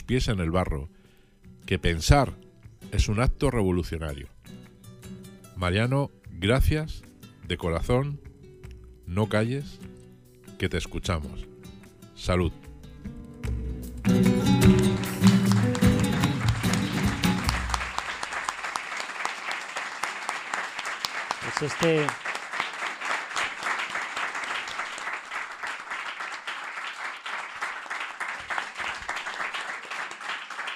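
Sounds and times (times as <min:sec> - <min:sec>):
speech: 0:00.1 - 0:01.0, 0:01.6 - 0:04.6, 0:05.6 - 0:08.3, 0:09.1 - 0:09.9, 0:10.6 - 0:11.5, 0:12.2 - 0:12.6, 0:21.6 - 0:22.3
audience applause: 0:14.0 - 0:30.7.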